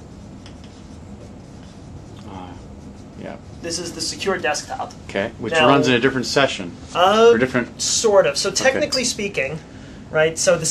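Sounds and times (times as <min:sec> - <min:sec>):
pen or marker drawing on a board: 0:00.0 - 0:05.0
low hum: 0:00.0 - 0:10.7
speech: 0:03.2 - 0:10.7.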